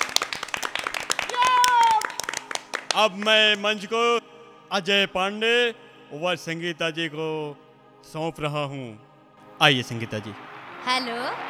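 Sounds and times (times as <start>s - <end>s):
audience clapping to welcome performers on stage: 0.0s - 3.9s, 9.4s - 11.4s
speech: 3.0s - 11.4s.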